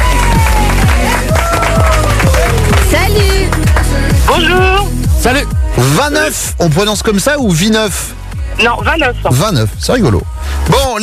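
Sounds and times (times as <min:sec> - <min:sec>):
audience applause and cheering: 0:00.0 - 0:04.3
speech: 0:05.3 - 0:11.0.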